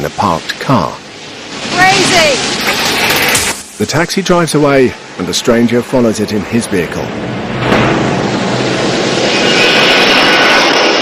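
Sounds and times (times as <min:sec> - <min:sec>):
airplane engine roar while coming in to land: 0:00.0 - 0:11.0
speech: 0:00.1 - 0:01.0, 0:03.8 - 0:08.0.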